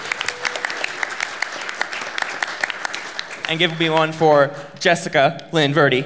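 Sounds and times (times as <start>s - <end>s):
audience clapping: 0.0s - 4.5s
speech: 3.5s - 6.0s.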